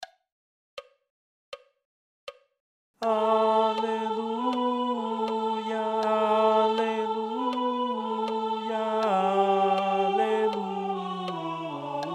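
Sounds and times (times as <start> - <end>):
choir acclaiming: 3.0 - 12.1.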